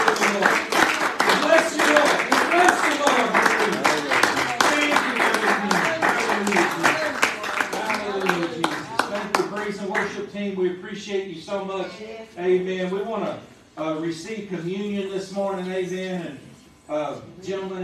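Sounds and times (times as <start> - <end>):
audience clapping hands: 0.0 - 10.2
speech: 11.0 - 17.8.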